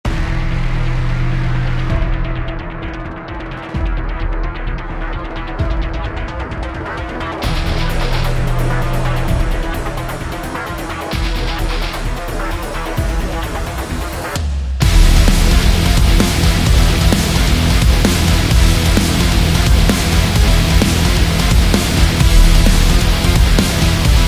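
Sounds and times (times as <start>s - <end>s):
epic cyber rock industrial metal music: 0.0s - 24.2s.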